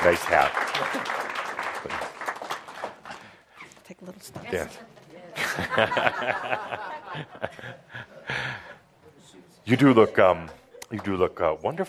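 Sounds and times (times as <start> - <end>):
speech: 0.0 - 2.1, 3.9 - 8.5, 9.6 - 11.8
audience applause welcoming a returning guest: 0.0 - 3.4
laughter: 5.4 - 8.8.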